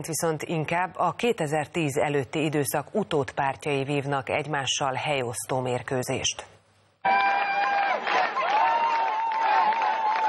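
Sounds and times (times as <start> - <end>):
speech: 0.0 - 7.7
crowd applause: 7.1 - 10.2
whoops and cheering: 7.1 - 10.2.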